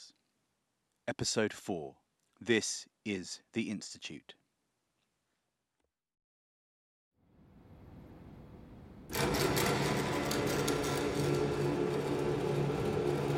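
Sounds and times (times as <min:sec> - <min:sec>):
speech: 0:01.1 - 0:04.4
shutters rolling down on a service door of the Hotel Astoria: 0:09.1 - 0:13.3.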